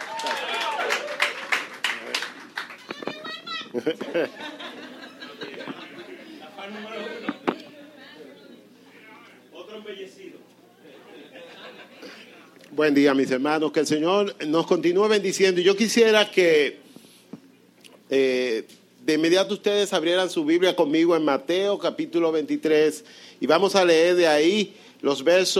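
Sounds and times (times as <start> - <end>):
audience applause: 0.0 - 4.8
laughter: 3.0 - 7.6, 10.8 - 12.5
speech: 3.8 - 4.6, 9.8 - 16.8, 18.1 - 25.5.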